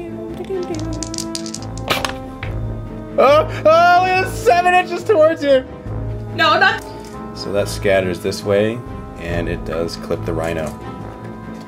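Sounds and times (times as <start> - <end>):
dice clattering on a hard surface: 0.4 - 2.3
speech: 0.5 - 1.0, 3.2 - 5.8, 6.4 - 10.9.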